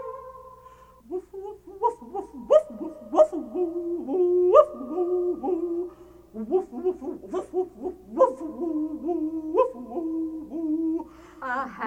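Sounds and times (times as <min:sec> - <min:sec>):
coyote yipping and howling: 0:01.8 - 0:11.1.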